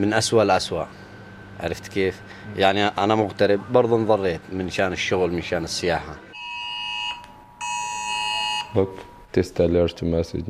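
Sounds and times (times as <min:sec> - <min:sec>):
speech: 0:00.0 - 0:01.0, 0:01.6 - 0:06.3, 0:08.7 - 0:10.4
mobile phone emergency alert test tones: 0:06.3 - 0:09.1.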